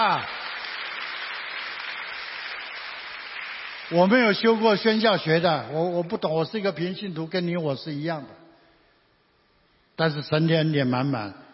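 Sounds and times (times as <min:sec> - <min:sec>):
speech: 0:00.0 - 0:00.4, 0:03.9 - 0:08.4, 0:10.0 - 0:11.4
audience applause: 0:00.0 - 0:05.0.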